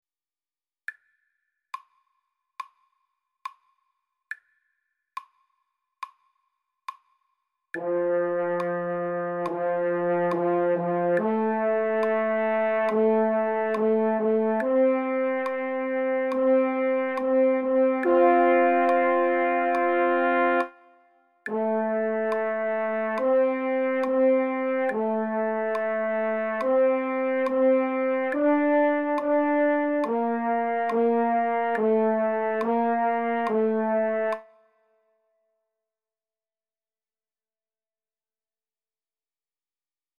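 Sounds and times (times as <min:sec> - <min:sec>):
fanfare: 0:07.8 - 0:20.8, 0:21.5 - 0:34.4.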